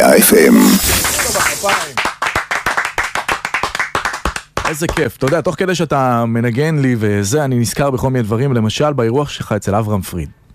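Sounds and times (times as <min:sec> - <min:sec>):
people clapping hands: 0:00.8 - 0:05.6
speech: 0:04.7 - 0:10.4.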